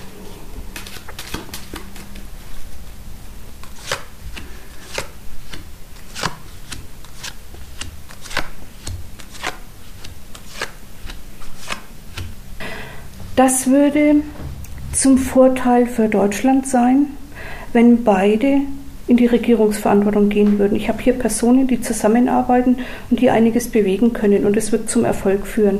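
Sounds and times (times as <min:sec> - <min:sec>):
deck of cards being shuffled: 0:00.7 - 0:02.3, 0:03.6 - 0:12.3
speech: 0:13.4 - 0:14.4, 0:15.0 - 0:25.7.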